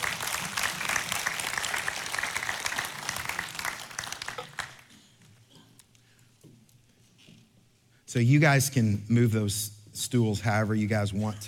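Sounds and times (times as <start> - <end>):
audience applauding a couple coming up on stage: 0.0 - 5.0
speech: 8.1 - 11.4.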